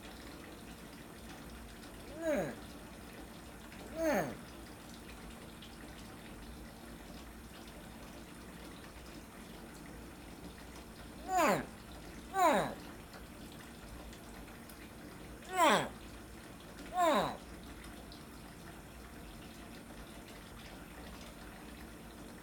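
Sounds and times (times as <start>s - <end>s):
young dwarf crocodiles calling for help in water at a zoo: 2.2s - 2.6s, 3.9s - 4.4s, 11.2s - 11.8s, 12.4s - 12.8s, 15.5s - 16.0s, 16.9s - 17.4s.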